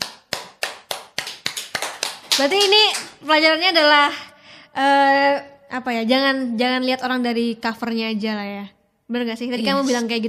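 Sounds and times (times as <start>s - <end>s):
hands clapping: 0.0s - 3.2s
speech: 2.4s - 4.2s, 4.8s - 10.2s.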